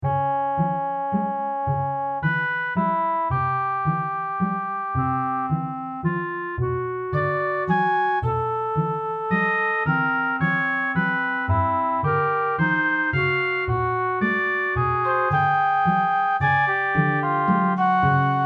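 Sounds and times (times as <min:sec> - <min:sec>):
barcarolle piece: 0:00.0 - 0:18.4.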